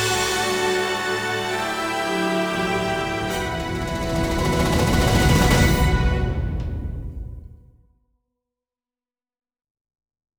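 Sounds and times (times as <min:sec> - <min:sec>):
epic victory music: 0:00.0 - 0:07.6.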